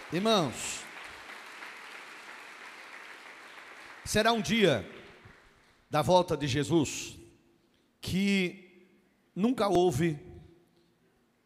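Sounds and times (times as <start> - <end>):
audience applause: 0.0 - 5.6
speech: 0.1 - 0.8, 4.1 - 5.0, 5.9 - 7.2, 8.0 - 8.6, 9.4 - 10.3.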